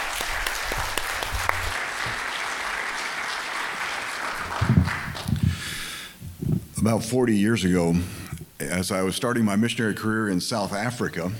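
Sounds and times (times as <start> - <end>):
church congregation clapping to welcome a guest missionary speaker: 0.0 - 6.0
speech: 6.8 - 11.3.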